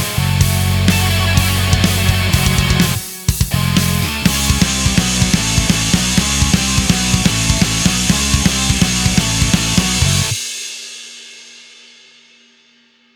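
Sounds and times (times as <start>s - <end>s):
boss battle metal music: 0.0s - 10.5s.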